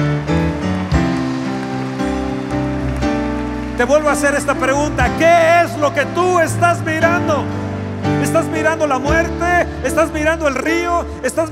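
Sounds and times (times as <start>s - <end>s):
audience applauding: 0.0s - 7.2s
speech: 3.8s - 7.6s, 8.2s - 11.5s.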